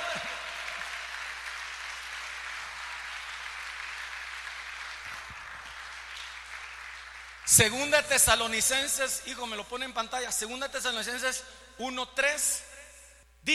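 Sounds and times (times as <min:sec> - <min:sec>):
audience applause: 0:00.0 - 0:07.6
speech: 0:07.5 - 0:12.7.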